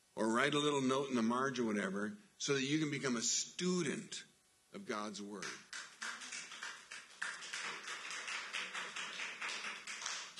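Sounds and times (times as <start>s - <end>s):
speech: 0.2s - 5.6s
crowd clapping: 5.4s - 10.3s.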